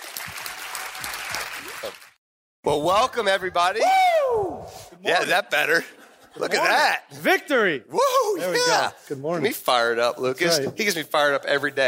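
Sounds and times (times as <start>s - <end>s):
audience applause for two guests: 0.0s - 2.2s
speech: 1.8s - 11.8s
audience shouts and cheers: 3.6s - 4.7s.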